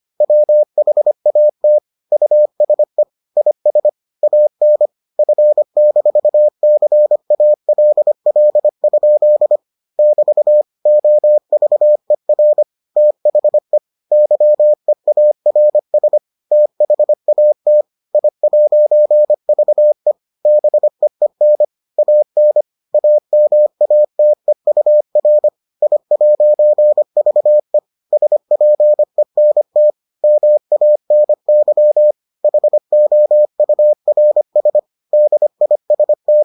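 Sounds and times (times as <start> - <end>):
morse code beeps: 0.2 - 36.4.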